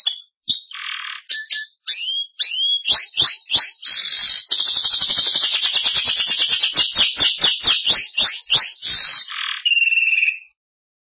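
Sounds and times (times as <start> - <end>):
Belgian canary song: 0.0 - 10.6.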